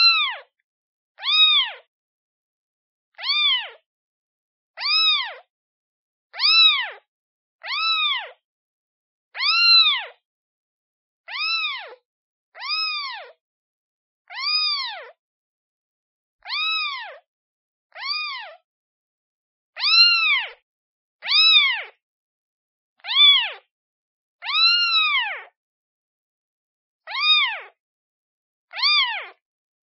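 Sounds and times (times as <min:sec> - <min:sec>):
kitten meowing calling for its mother: 0:00.0 - 0:00.5, 0:01.2 - 0:01.9, 0:03.2 - 0:03.8, 0:04.8 - 0:05.4, 0:06.3 - 0:07.0, 0:07.6 - 0:08.4, 0:09.4 - 0:10.2, 0:11.3 - 0:12.0, 0:12.6 - 0:13.4, 0:14.3 - 0:15.2, 0:16.4 - 0:17.2, 0:17.9 - 0:18.6, 0:19.8 - 0:20.6, 0:21.2 - 0:22.0, 0:23.0 - 0:23.6, 0:24.4 - 0:25.5, 0:27.1 - 0:27.8, 0:28.7 - 0:29.4.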